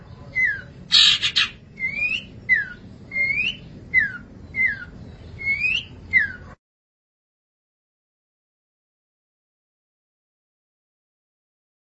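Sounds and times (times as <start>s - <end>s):
long-tailed shrike whistling: 0.4s - 6.4s.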